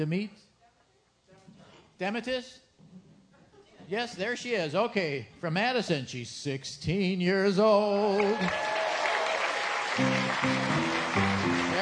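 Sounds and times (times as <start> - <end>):
speech: 0.0 - 0.5, 2.0 - 3.0, 3.9 - 8.7
audience applause for a 16-year-old girl on her birthday: 8.1 - 11.8.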